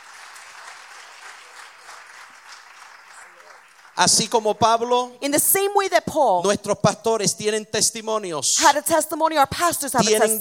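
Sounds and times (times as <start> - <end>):
audience applause: 0.0 - 4.9
speech: 4.0 - 10.3.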